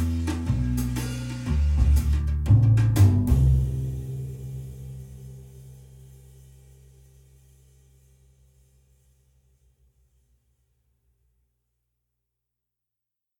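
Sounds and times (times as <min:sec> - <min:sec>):
rhythm section alone: 0:00.0 - 0:05.1.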